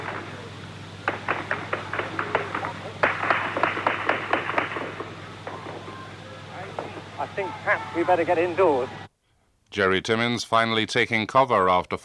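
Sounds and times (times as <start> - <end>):
gunfire around a city square: 0.0 - 6.1
steady low hum: 0.0 - 9.6
speech: 7.4 - 9.0, 9.7 - 12.0.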